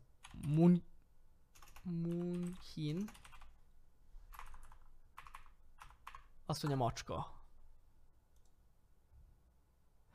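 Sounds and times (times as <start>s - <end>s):
speech: 0.5s - 0.9s, 1.8s - 3.3s, 6.5s - 7.4s
clicky computer keyboard typing: 1.5s - 3.5s, 4.3s - 6.3s.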